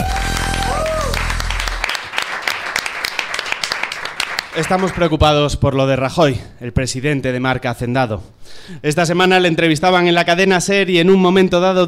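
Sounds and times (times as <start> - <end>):
loud low tone: 0.0 - 1.9
audience applause: 0.0 - 5.0
speech: 4.6 - 11.8.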